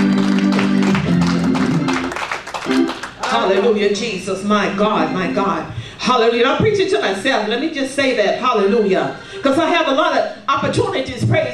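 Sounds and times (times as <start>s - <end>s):
audience applause: 0.0s - 3.7s
speech: 3.5s - 11.5s.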